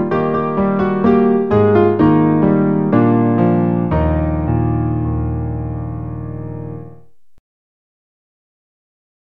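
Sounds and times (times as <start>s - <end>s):
piano: 0.0s - 7.4s.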